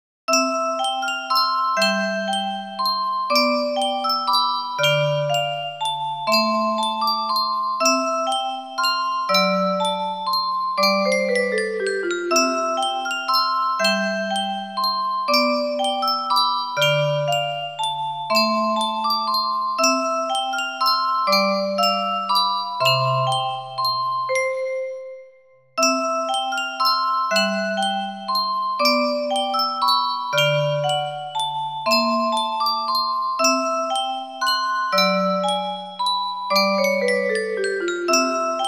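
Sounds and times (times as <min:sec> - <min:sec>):
carillon bells: 0:00.3 - 0:38.6.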